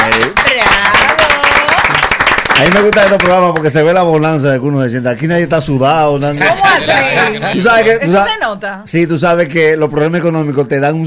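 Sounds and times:
studio audience applause: 0:00.0 - 0:03.6
speech: 0:02.6 - 0:11.0.

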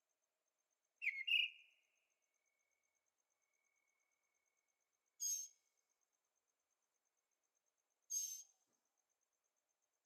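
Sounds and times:
bird whistling: 0:01.0 - 0:01.6.

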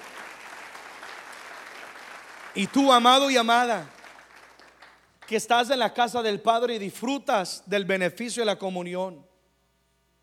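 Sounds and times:
audience applause: 0:00.0 - 0:05.0
speech: 0:02.6 - 0:04.0, 0:05.3 - 0:09.3.

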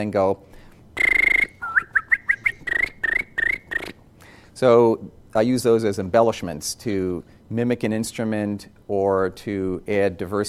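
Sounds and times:
speech: 0:00.0 - 0:00.5, 0:04.6 - 0:10.4
whistling with the tongue: 0:01.0 - 0:04.0.

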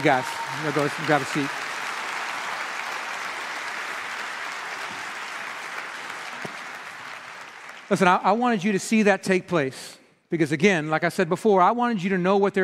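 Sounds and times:
speech: 0:00.0 - 0:01.6, 0:07.9 - 0:12.6
audience applause: 0:00.0 - 0:08.2.

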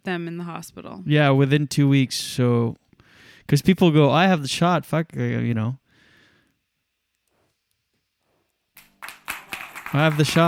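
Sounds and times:
speech: 0:00.0 - 0:02.8, 0:03.5 - 0:05.8, 0:09.9 - 0:10.4
audience clapping: 0:08.8 - 0:10.4.

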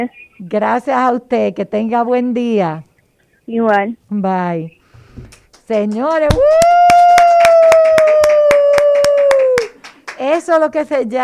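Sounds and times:
speech: 0:00.0 - 0:02.9, 0:03.5 - 0:06.9, 0:10.3 - 0:11.2
hand clapping: 0:05.2 - 0:10.5.

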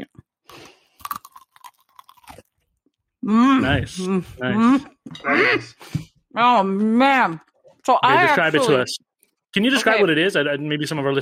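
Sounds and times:
crunchy banana cue being bitten and chewed: 0:00.0 - 0:03.0
speech: 0:03.2 - 0:11.2.

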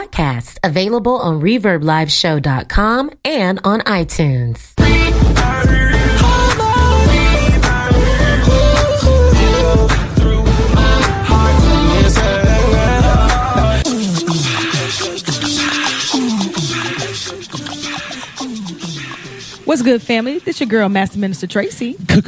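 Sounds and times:
speech: 0:00.0 - 0:05.8, 0:19.7 - 0:22.2
song with driving beat and deep bass: 0:04.8 - 0:20.6.

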